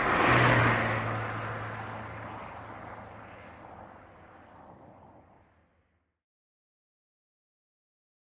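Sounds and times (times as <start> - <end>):
cars passing by at 40 mph on a highway: 0.0 - 6.0.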